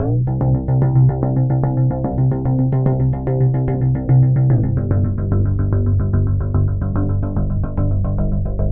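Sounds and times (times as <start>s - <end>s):
funk music: 0.0s - 8.7s.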